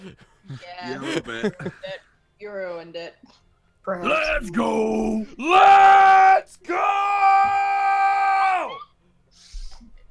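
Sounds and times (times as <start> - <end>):
laughter: 0.0 - 2.0
speech: 0.0 - 7.7
person screaming: 4.1 - 8.9.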